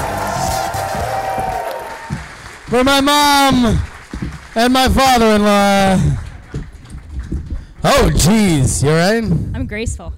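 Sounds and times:
studio audience applause: 0.0 - 8.6
speech: 2.7 - 3.9, 4.6 - 6.2, 7.8 - 10.1.

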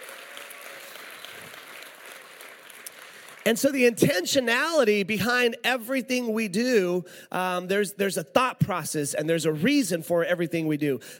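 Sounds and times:
audience applause: 0.0 - 3.5
speech: 3.5 - 11.1.

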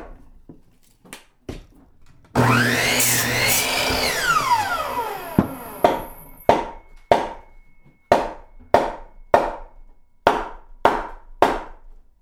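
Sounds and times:
saw sawing: 2.4 - 7.3
hammering: 2.4 - 11.7.

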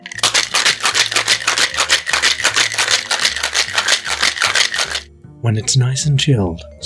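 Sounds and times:
ice rattling in a cocktail shaker being shaken: 0.0 - 5.1
speech: 5.4 - 6.8.

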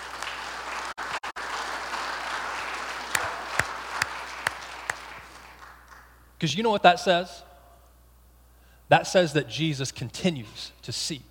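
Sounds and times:
audience applauding in celebration: 0.0 - 6.2
speech: 6.4 - 7.5, 8.9 - 11.2.

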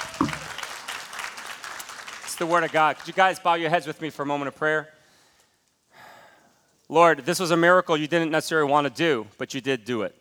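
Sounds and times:
round of applause: 0.0 - 3.3
speech: 2.4 - 5.0, 6.9 - 10.1.

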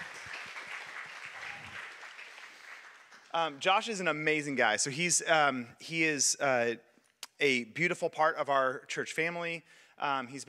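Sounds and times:
audience clapping: 0.0 - 4.0
speech: 3.3 - 10.4.

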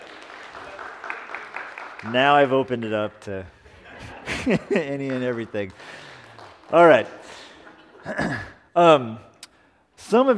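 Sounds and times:
church audience applauding: 0.0 - 3.4, 4.3 - 7.9
speech: 2.0 - 3.6, 4.4 - 5.9, 6.7 - 7.2, 8.0 - 9.3, 10.1 - 10.3
laughter: 3.6 - 6.0.

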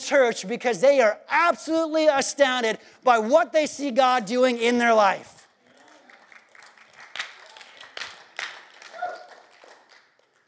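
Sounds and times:
speech: 0.1 - 5.4
audience clapping: 5.6 - 10.4
cheering: 5.7 - 10.0.

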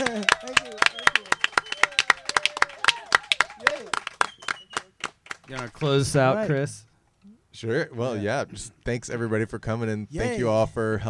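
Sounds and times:
voices cheering and chattering: 0.0 - 4.0
small crowd clapping at a live event: 0.0 - 6.2
speech: 5.5 - 6.9, 7.6 - 11.0.

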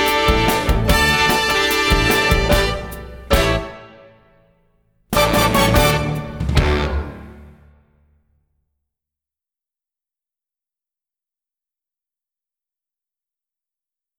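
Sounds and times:
instrumental music: 0.0 - 4.2, 5.1 - 7.8.

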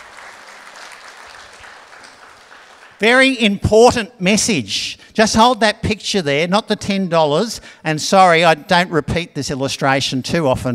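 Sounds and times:
audience applause: 0.0 - 3.0
speech: 3.0 - 10.7.

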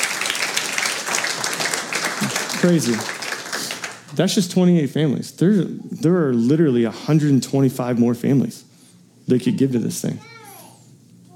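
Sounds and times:
crowd applause: 0.0 - 4.5
speech: 2.6 - 3.2, 4.1 - 8.6, 9.3 - 10.3.

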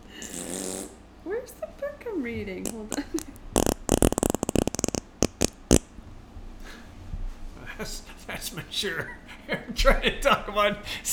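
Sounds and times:
fart noise blown into a microphone: 0.2 - 1.0, 2.7 - 5.9
speech: 2.2 - 3.2, 7.8 - 11.1.

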